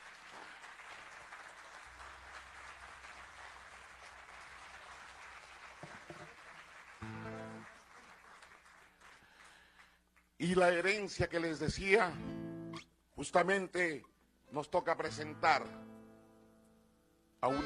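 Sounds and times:
audience applause: 0.0s - 10.0s
speech: 10.4s - 12.3s, 13.2s - 15.8s, 17.4s - 17.6s.

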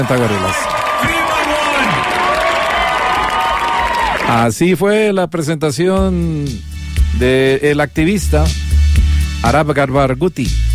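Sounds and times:
speech: 0.0s - 1.2s, 4.3s - 8.6s, 9.4s - 10.6s
concert audience cheering at the Primavera Sound festival: 0.0s - 4.3s
whoops and high-pitched shouts: 0.5s - 4.3s.

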